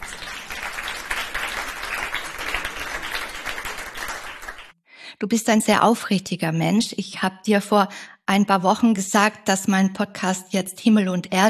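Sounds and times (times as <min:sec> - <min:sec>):
audience applause: 0:00.0 - 0:04.7
speech: 0:05.2 - 0:11.4.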